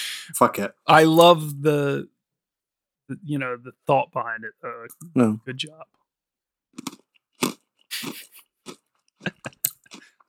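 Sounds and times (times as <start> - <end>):
speech: 0.3 - 2.1, 3.1 - 6.0, 6.8 - 7.0
biting into and chewing a chocolate frog: 6.8 - 10.2.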